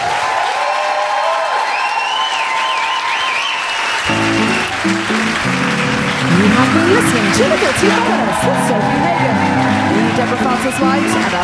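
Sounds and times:
cheering and whistles: 0:00.0 - 0:11.4
crowd applauding: 0:00.0 - 0:11.4
bright musical melody: 0:04.1 - 0:11.4
speech: 0:06.9 - 0:09.6, 0:10.2 - 0:11.4.

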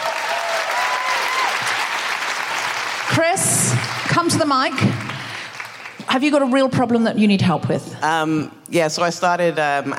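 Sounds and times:
audience applause: 0:00.0 - 0:06.1
speech: 0:03.2 - 0:05.0, 0:06.1 - 0:09.9.

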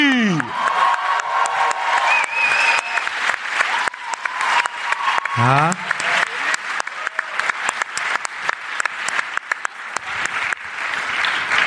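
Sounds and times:
audience applause: 0:00.2 - 0:11.6
crowd cheers and whistles: 0:00.4 - 0:07.8
speech: 0:05.4 - 0:05.8.

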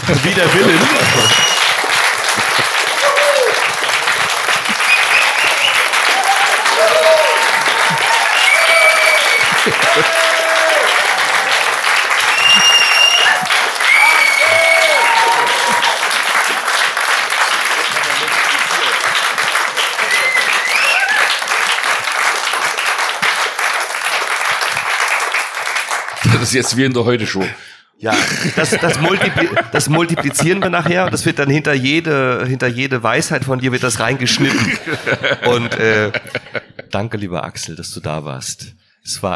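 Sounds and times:
laughter: 0:00.0 - 0:13.7, 0:14.6 - 0:21.2, 0:27.4 - 0:31.4, 0:34.0 - 0:36.9
roaring applause: 0:00.0 - 0:26.8
speech: 0:00.1 - 0:01.4, 0:09.6 - 0:10.2, 0:26.5 - 0:39.3.

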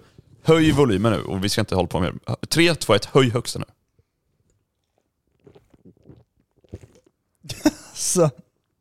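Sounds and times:
speech: 0:00.5 - 0:03.8, 0:07.5 - 0:08.4
person gulping down a can of Red Bull energy drink: 0:04.4 - 0:07.5.

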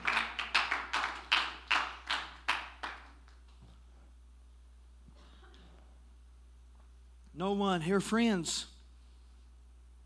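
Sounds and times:
audience clapping in unison: 0:00.0 - 0:03.4
speech: 0:07.4 - 0:08.7.

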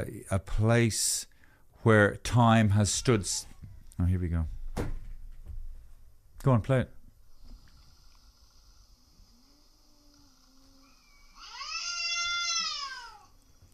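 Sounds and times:
speech: 0:00.0 - 0:05.0, 0:06.4 - 0:07.0
cat caterwauling at night: 0:10.8 - 0:13.4.

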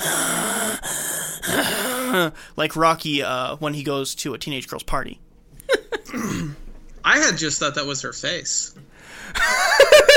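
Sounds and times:
person imitating labored swollen-face breathing: 0:00.0 - 0:02.4
speech: 0:02.1 - 0:05.3, 0:06.1 - 0:10.1.

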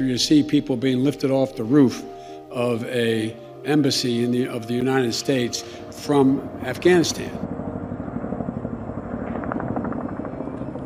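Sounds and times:
speech: 0:00.0 - 0:07.5
helicopter flying: 0:03.8 - 0:10.8.

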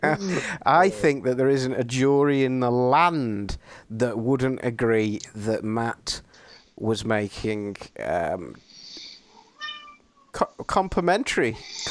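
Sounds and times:
speech: 0:00.0 - 0:08.7, 0:10.4 - 0:11.8
house cat meowing: 0:09.6 - 0:10.0.

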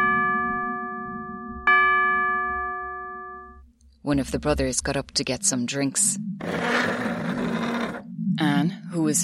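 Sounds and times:
clock chiming the late hour: 0:00.0 - 0:03.6
speech: 0:04.0 - 0:07.1, 0:08.6 - 0:09.2.

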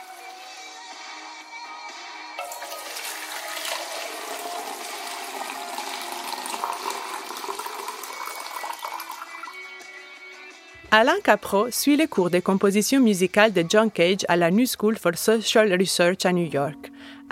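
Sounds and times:
water poured from one container into another: 0:02.4 - 0:09.7
speech: 0:10.9 - 0:17.3.

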